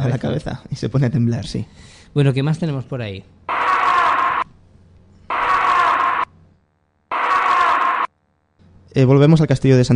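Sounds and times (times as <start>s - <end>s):
speech: 0.0s - 3.4s, 9.0s - 9.9s
female scream in a paranormal voice recording: 3.5s - 4.4s, 5.3s - 6.3s, 7.1s - 8.1s.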